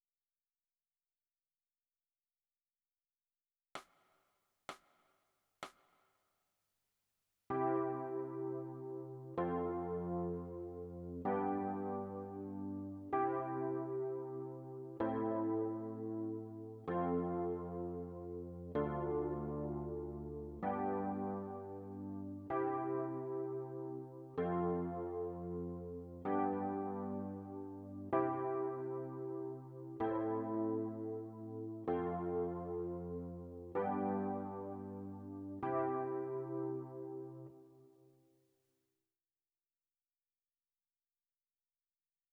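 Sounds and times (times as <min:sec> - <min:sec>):
electric piano: 0:07.5 - 0:37.6.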